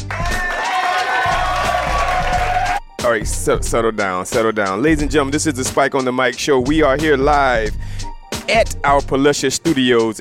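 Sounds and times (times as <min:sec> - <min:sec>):
live show audience clapping in a bowling alley studio: 0:00.0 - 0:02.8
speech: 0:03.1 - 0:10.2.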